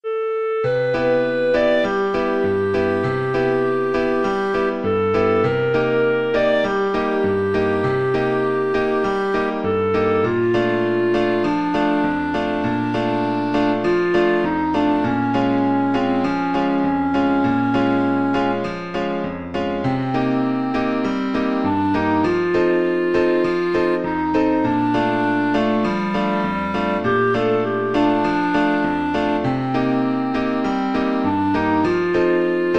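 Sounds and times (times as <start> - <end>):
clarinet playing beguine: 0.0 - 32.7.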